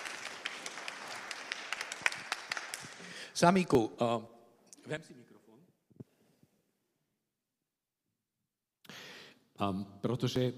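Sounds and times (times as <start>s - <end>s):
audience applause: 0.0s - 3.4s
speech: 3.4s - 4.3s, 4.9s - 5.3s, 9.6s - 10.5s.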